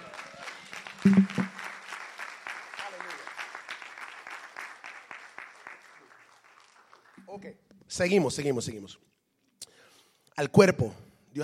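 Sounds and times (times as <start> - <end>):
audience applause: 0.0 - 7.2
speech: 1.0 - 1.4, 8.0 - 9.1, 10.4 - 11.4.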